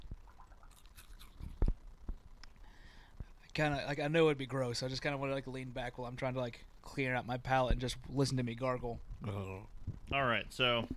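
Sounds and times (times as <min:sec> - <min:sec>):
munching saltless crackers: 0:00.2 - 0:01.8
speech: 0:03.6 - 0:10.9.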